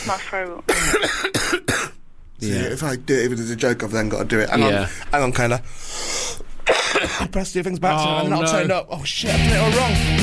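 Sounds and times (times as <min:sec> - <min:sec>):
speech: 0:00.1 - 0:06.4, 0:07.0 - 0:10.2
person with a cold coughing on request: 0:00.7 - 0:02.0, 0:06.6 - 0:07.3.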